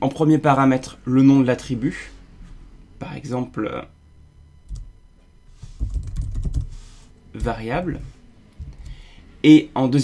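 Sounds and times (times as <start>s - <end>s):
speech: 0.0s - 2.2s, 3.0s - 4.0s, 7.4s - 8.2s, 9.4s - 10.0s
typing code on a computer keyboard: 5.8s - 6.7s.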